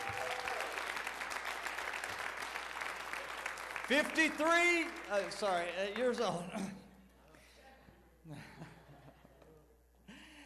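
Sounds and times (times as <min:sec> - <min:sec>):
audience applause, hand clapping: 0:00.0 - 0:06.5
speech: 0:03.9 - 0:06.8.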